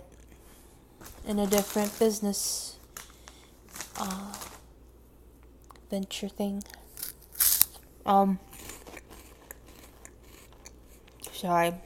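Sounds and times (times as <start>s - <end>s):
speech: 1.2s - 2.7s, 4.0s - 4.3s, 5.9s - 6.8s, 8.0s - 8.5s, 11.4s - 11.8s
person chewing a Cheeto: 6.6s - 7.8s, 8.5s - 11.4s.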